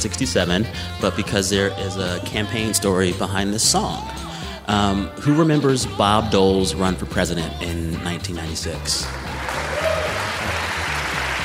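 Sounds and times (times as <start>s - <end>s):
speech: 0.0s - 9.6s
audience applause at a live event in Des Moines, Iowa: 9.0s - 11.4s.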